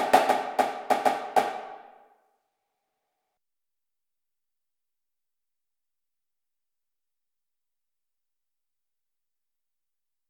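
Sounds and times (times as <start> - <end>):
snare drumline: 0.0 - 1.9.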